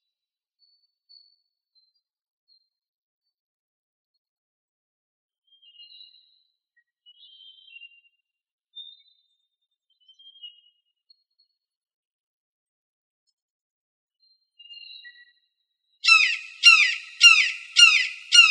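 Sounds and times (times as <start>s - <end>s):
red-shouldered hawk harsh falling kee-ah screams: 16.1s - 18.4s.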